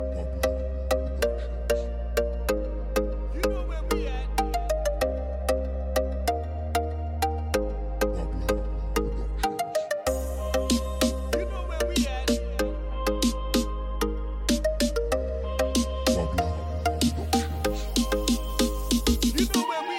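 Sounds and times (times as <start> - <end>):
reggae dancehall music: 0.0 - 19.9.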